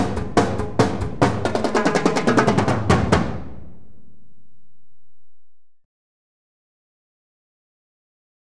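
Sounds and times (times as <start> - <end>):
jam session: 0.0 - 3.9.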